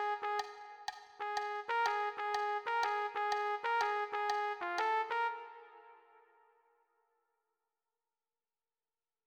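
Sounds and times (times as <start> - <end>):
swing jazz trumpet: 0.0 - 5.8.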